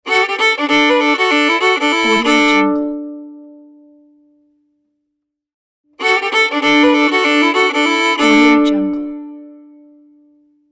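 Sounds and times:
bluegrass fiddle logo: 0.1s - 3.0s, 6.0s - 9.4s.

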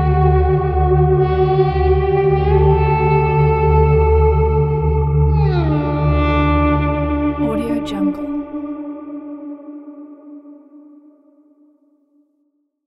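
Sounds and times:
duduk: 0.0s - 9.8s.

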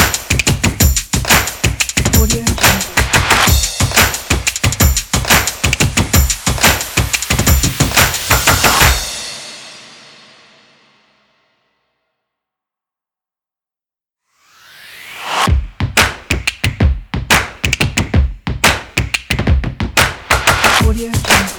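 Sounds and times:
percussion kit hand claps: 0.0s - 8.9s, 15.9s - 21.5s
percussion kit foot stomps: 15.5s - 21.5s.

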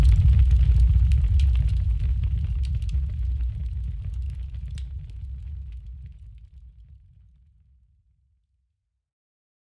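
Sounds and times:
large dark fire burning: 0.0s - 7.2s.

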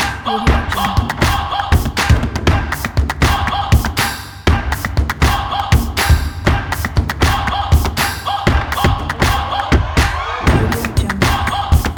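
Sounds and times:
tribal sport percussion: 0.0s - 11.9s.

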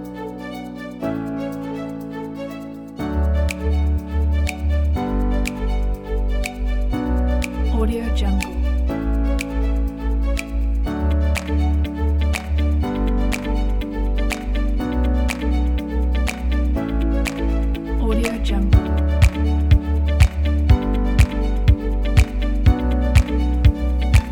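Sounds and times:
corporate presentation music: 0.0s - 24.3s.

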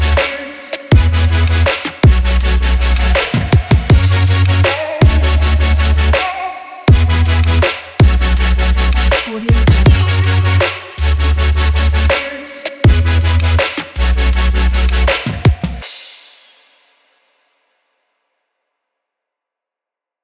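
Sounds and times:
future bass music: 0.0s - 15.8s.

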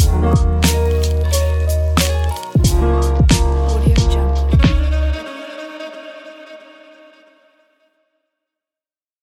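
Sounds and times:
lofi beat: 0.0s - 5.1s.

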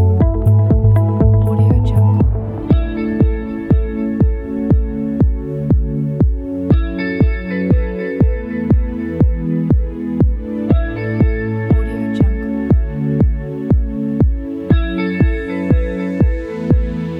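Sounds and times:
inspiring corporate background music: 0.0s - 17.1s.

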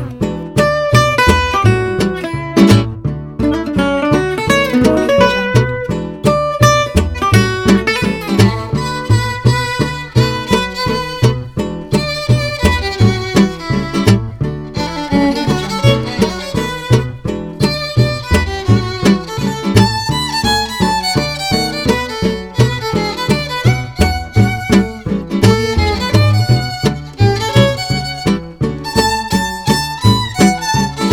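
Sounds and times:
comedy gypsy jazz violin: 0.0s - 31.1s.

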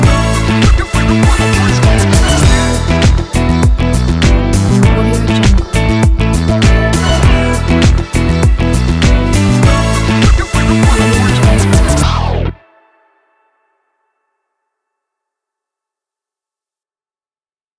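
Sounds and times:
disco music: 0.0s - 12.8s.

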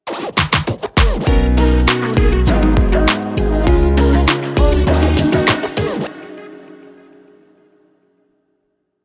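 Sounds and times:
stylish vlog opener ident music: 1.3s - 6.2s.

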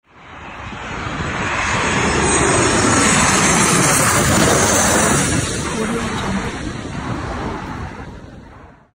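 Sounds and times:
jet plane flying by: 0.1s - 8.9s.

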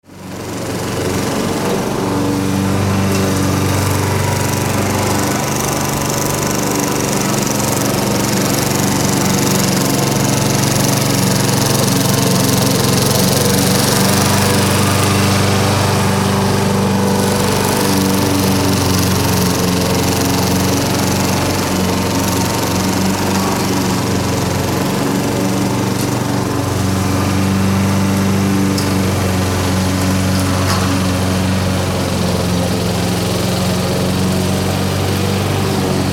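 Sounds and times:
lawn mower: 0.0s - 36.1s.

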